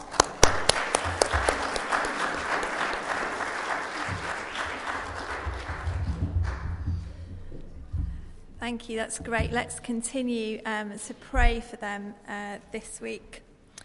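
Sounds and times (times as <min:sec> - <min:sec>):
audience applauding: 0:00.0 - 0:06.9
speech: 0:08.7 - 0:13.4.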